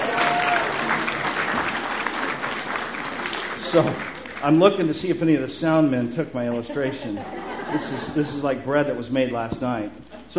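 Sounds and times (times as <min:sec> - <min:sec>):
audience applauding a child: 0:00.0 - 0:04.6
speech: 0:03.7 - 0:10.3
laughter: 0:06.3 - 0:09.0.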